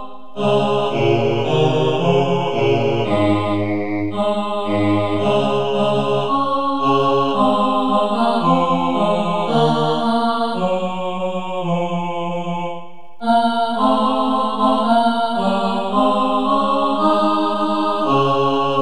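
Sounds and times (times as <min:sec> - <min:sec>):
tenor and bass choir singing: 0:00.0 - 0:18.8.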